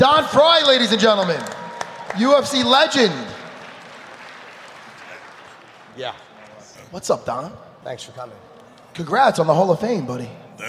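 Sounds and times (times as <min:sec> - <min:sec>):
speech: 0:00.0 - 0:03.4, 0:06.0 - 0:06.2, 0:06.9 - 0:10.6
audience applause: 0:01.2 - 0:06.1.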